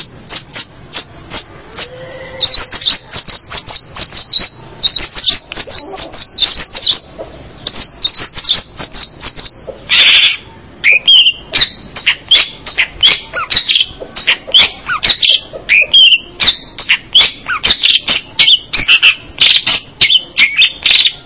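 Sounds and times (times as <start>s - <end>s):
bird chirping in high sharp notes: 0.0s - 21.2s.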